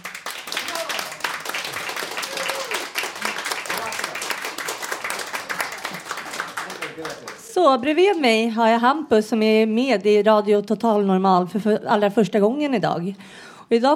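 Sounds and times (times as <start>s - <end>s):
applause: 0.0s - 7.6s
speech: 7.6s - 13.9s.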